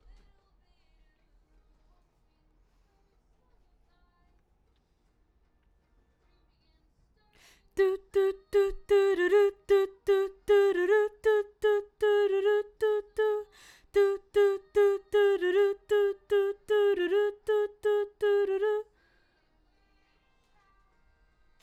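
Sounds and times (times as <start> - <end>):
background vocals: 7.4 - 19.9.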